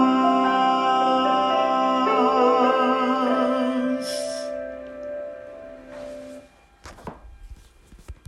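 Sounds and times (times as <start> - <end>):
contralto singing: 0.0 - 4.6.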